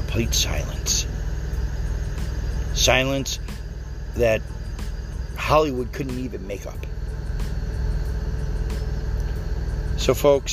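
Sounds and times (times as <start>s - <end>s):
18-wheeler truck engine and road rumble: 0.0s - 10.5s
speech: 0.2s - 1.1s, 2.8s - 3.4s, 4.2s - 4.5s, 5.4s - 6.9s, 10.0s - 10.5s.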